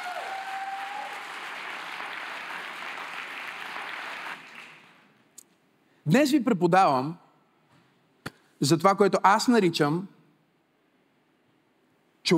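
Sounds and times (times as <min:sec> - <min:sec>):
church congregation applauding: 0:00.0 - 0:05.2
speech: 0:06.1 - 0:07.2, 0:08.6 - 0:10.2.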